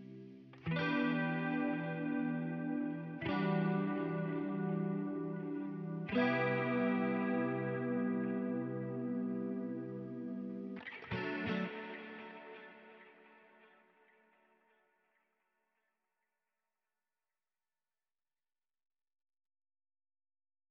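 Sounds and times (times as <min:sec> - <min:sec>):
spacey guitar chords: 0:00.0 - 0:14.8.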